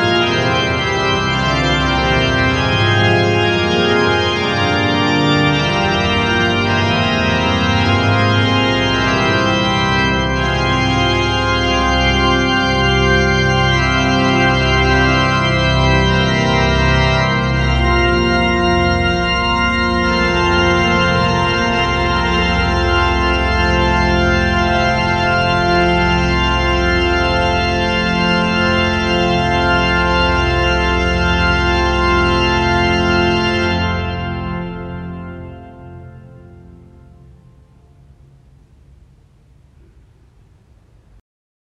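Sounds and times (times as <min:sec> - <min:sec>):
pipe organ playing plein jeu: 0:00.0 - 0:41.2.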